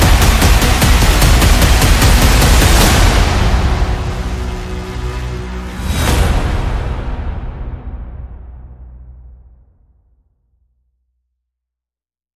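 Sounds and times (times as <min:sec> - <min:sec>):
backing music: 0:00.0 - 0:09.3.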